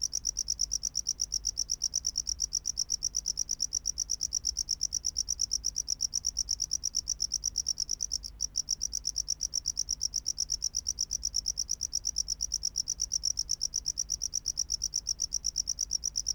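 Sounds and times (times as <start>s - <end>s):
tropical house cricket singing: 0.0s - 16.3s.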